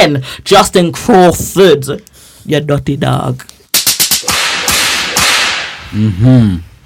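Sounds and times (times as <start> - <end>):
speech: 0.0 - 3.5, 5.9 - 6.7
belt whip cracks: 3.8 - 5.8.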